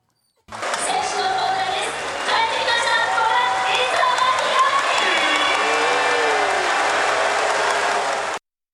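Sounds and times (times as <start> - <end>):
stadium crowd cheering: 0.5 - 8.4
stadium crowd clapping: 1.8 - 8.4
individual shouts in stadium crowd: 4.9 - 6.8.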